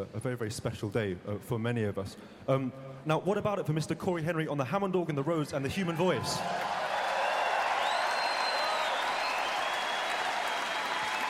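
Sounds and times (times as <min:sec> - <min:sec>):
speech: 0:00.0 - 0:06.8
audience clapping for musicians: 0:06.1 - 0:11.2
faint cheers and whistles: 0:06.4 - 0:11.2.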